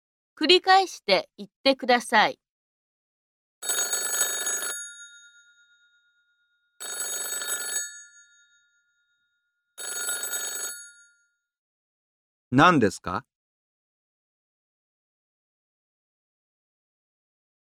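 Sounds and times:
speech: 0.4s - 2.4s, 12.5s - 13.3s
telephone bell ringing: 3.6s - 11.5s.

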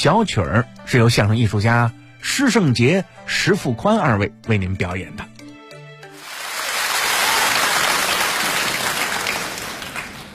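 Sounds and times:
speech: 0.0s - 5.3s
audience applause for a Chinese crosstalk comedy performance in Beijing: 6.2s - 10.3s.

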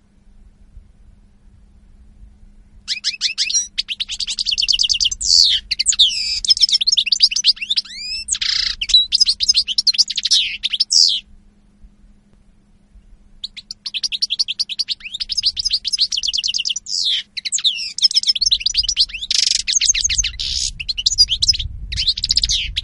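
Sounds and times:
faint hum: 0.0s - 22.8s
European goldfinch song: 2.9s - 11.3s, 12.9s - 22.8s.

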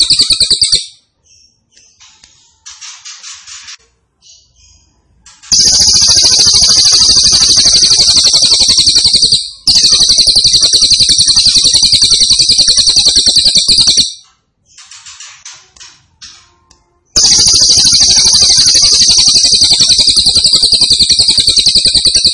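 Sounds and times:
grey-cheeked tit-babbler singing buzzing trills: 5.5s - 14.1s, 17.2s - 22.3s.

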